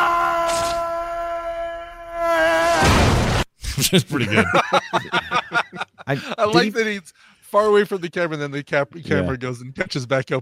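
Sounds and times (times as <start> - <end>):
person yelling and falling: 0.0 - 3.4
laughter: 3.8 - 6.7
speech: 3.8 - 10.4.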